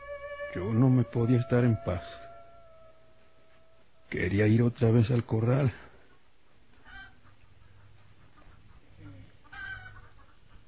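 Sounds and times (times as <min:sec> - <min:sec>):
speech: 0:00.6 - 0:02.2, 0:04.1 - 0:05.9
hens clucking: 0:06.1 - 0:10.6.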